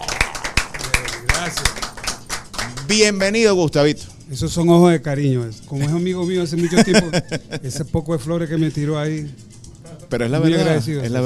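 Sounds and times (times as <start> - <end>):
audience clapping: 0.0 - 3.4
speech: 2.9 - 9.5, 10.1 - 11.2
laughter: 6.6 - 8.0.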